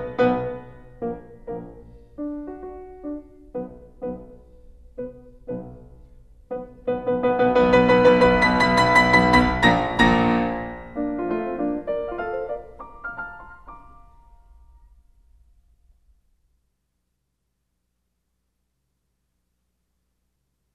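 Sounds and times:
piano sonata in B flat: 0:00.0 - 0:15.6.

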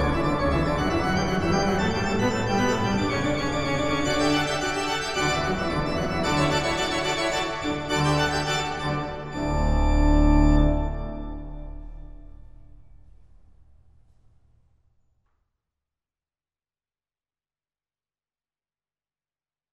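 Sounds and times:
prelude and fugue in D major: 0:00.0 - 0:12.6.

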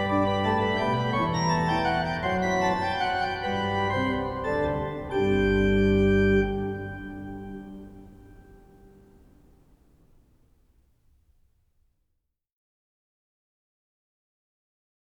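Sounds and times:
chorale on a great organ: 0:00.0 - 0:09.7.

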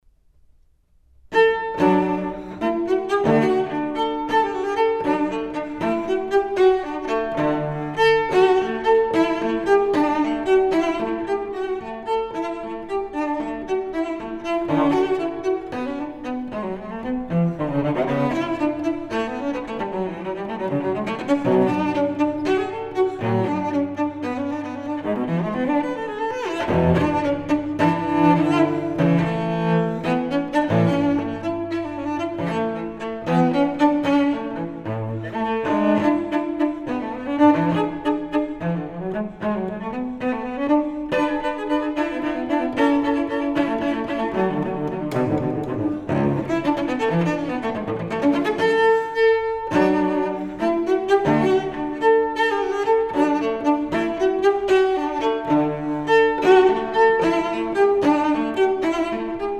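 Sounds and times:
solo cello suite: 0:01.2 - 0:59.5.

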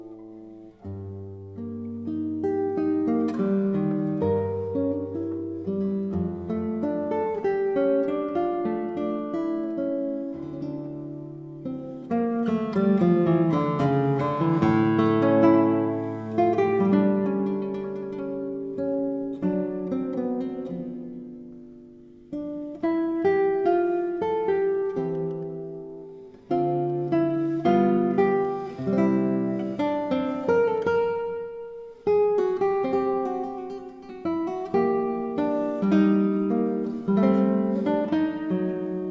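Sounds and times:
classical guitar piece: 0:00.0 - 0:39.0.

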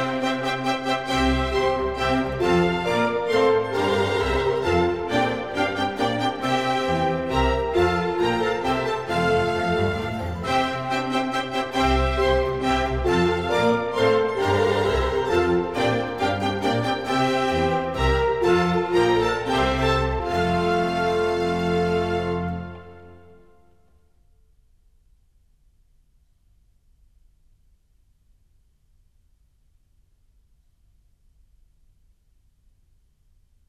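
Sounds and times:
orchestral suite: 0:00.0 - 0:24.1.

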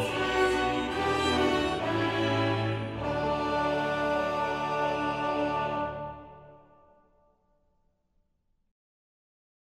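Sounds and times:
choir singing a cantata chorale: 0:00.0 - 0:06.6.

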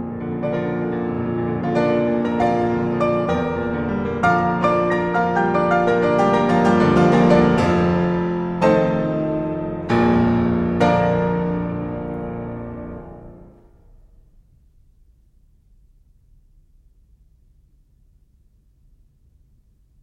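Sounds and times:
piano prelude in B flat major: 0:00.0 - 0:14.2.

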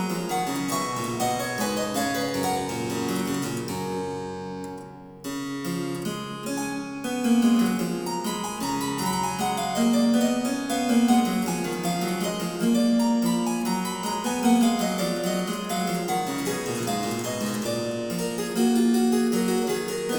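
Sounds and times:
harpsichord piece: 0:00.0 - 0:20.1.

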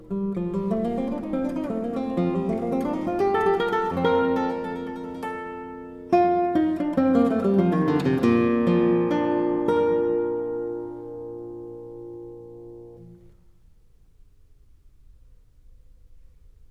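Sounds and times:
guitar playing a prelude: 0:00.0 - 0:13.4.

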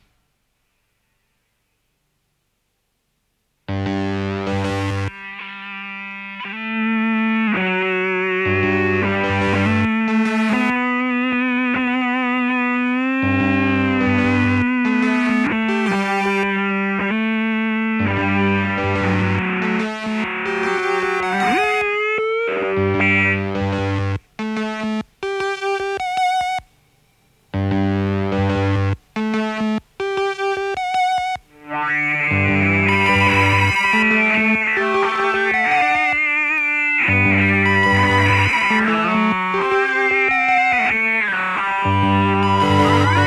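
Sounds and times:
solo loop: 0:03.7 - 0:43.2.

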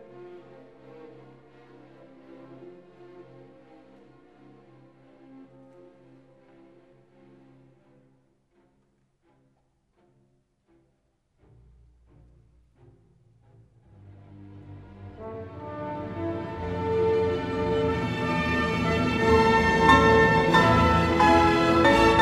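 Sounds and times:
piano concerto in D minor: 0:15.1 - 0:22.1.

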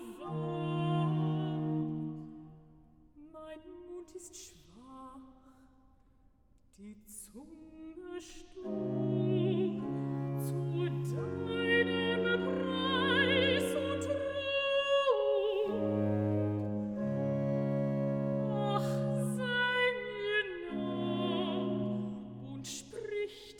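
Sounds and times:
alto singing recitative: 0:00.1 - 0:02.3, 0:08.6 - 0:23.1.

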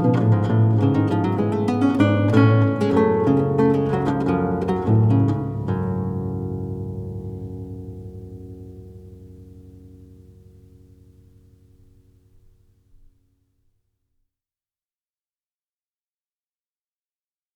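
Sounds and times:
lute suite gigue: 0:00.0 - 0:13.1.

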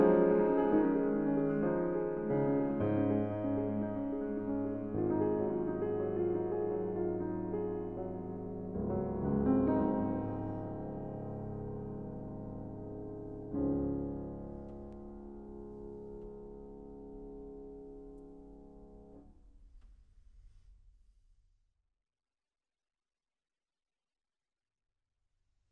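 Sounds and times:
impromptu in C sharp minor: 0:00.0 - 0:19.3.

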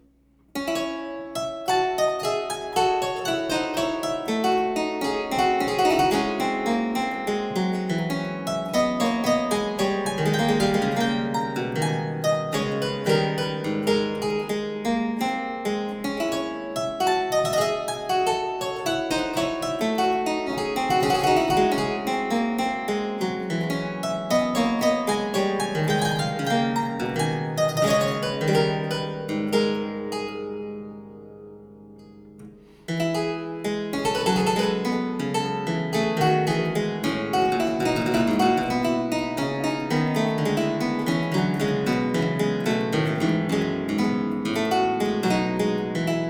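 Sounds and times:
baroque suite minuet in D minor: 0:00.0 - 0:46.2.

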